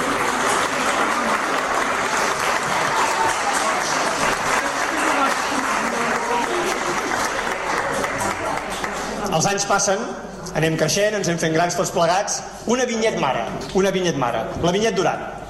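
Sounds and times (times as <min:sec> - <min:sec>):
applause: 0:00.0 - 0:09.4
speech: 0:09.4 - 0:15.4.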